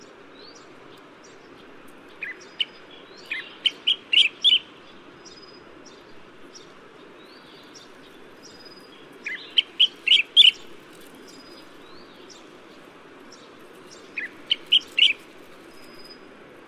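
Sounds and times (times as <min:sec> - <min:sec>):
collared finchbill calling: 0:02.2 - 0:04.7, 0:07.5 - 0:12.6, 0:13.6 - 0:16.2.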